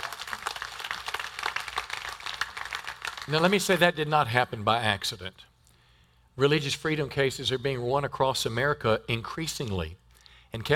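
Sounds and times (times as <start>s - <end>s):
audience applause: 0.0s - 3.6s
speech: 3.3s - 5.5s, 6.4s - 10.7s.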